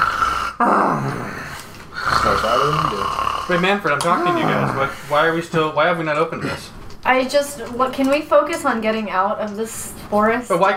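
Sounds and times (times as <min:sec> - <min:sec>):
loud snoring: 0:00.0 - 0:05.1
speech: 0:00.6 - 0:01.3, 0:02.3 - 0:10.7.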